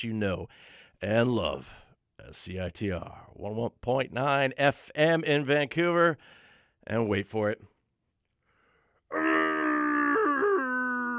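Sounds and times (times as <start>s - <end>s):
speech: 0.0s - 7.7s, 9.1s - 9.6s
voice imitating a Wookiee yell: 9.1s - 11.1s.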